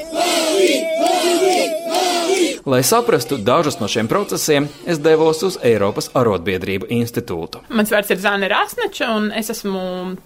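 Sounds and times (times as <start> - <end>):
crowd of workers chanting slogans: 0.0 - 5.1
speech: 2.6 - 10.2.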